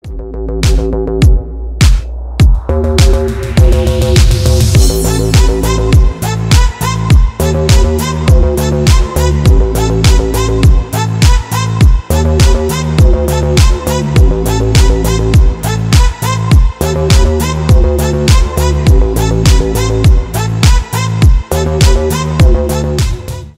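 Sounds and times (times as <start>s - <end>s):
instrumental music: 0.0s - 23.5s.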